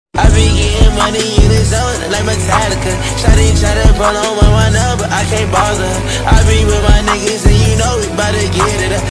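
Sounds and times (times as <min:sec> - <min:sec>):
random meme song sound effect: 0:00.2 - 0:09.0.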